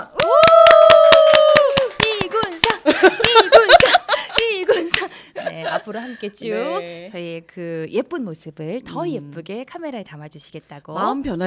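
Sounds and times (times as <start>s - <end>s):
hands clapping: 0.0s - 5.1s
laughter: 2.6s - 7.0s
speech: 2.9s - 3.3s, 5.9s - 11.4s.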